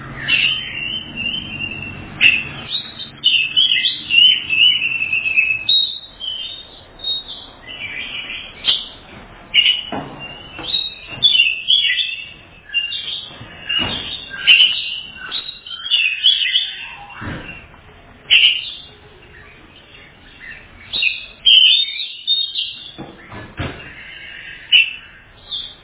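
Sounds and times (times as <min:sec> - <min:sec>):
Oriental magpie-robin whistled phrases: 0:00.2 - 0:08.9, 0:09.5 - 0:17.3, 0:18.3 - 0:23.0, 0:23.9 - 0:25.8.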